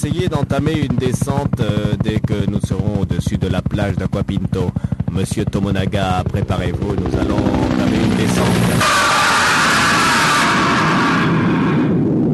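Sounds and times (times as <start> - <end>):
speech: 0.0 - 9.2
helicopter exploding: 6.2 - 12.2.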